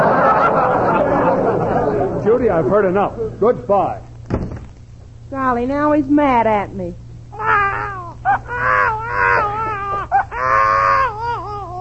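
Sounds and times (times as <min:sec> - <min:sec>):
laughter: 0:00.0 - 0:03.4
low steady hum: 0:00.0 - 0:11.7
speech: 0:02.3 - 0:04.1, 0:05.3 - 0:07.0
baby crying: 0:07.3 - 0:11.7.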